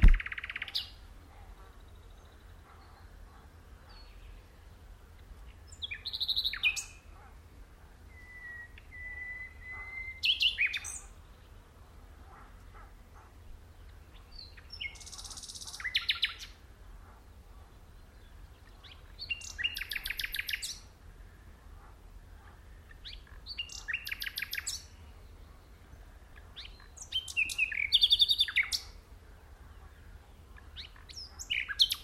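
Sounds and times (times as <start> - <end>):
common nightingale singing: 0.0 - 1.0, 5.5 - 7.2, 8.1 - 11.3, 13.8 - 16.6, 18.2 - 20.9, 22.9 - 25.4, 26.3 - 29.0, 30.6 - 32.0.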